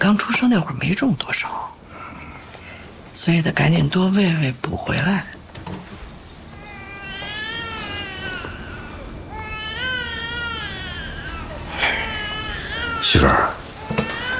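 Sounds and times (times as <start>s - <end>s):
speech: 0.0s - 1.8s, 3.2s - 5.4s
baby girl crying: 6.6s - 14.3s.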